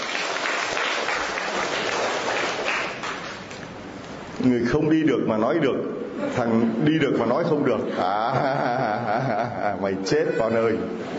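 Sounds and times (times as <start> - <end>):
audience applause for a man at a gathering: 0.0 - 3.6
speech: 4.4 - 11.1
laughter: 6.2 - 11.1.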